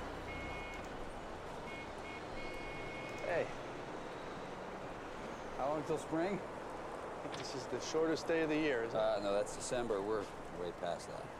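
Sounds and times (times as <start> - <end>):
vehicle rumble in an ambulance bay: 0.0 - 11.3
speech: 3.3 - 3.6, 5.6 - 6.6, 7.3 - 11.3.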